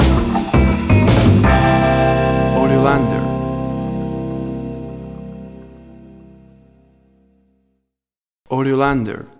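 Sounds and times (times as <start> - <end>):
1950s style music stinger: 0.0 - 7.3.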